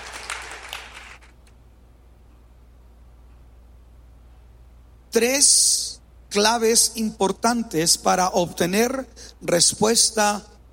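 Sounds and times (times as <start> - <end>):
audience applause: 0.0 - 1.3
speech: 5.2 - 10.5.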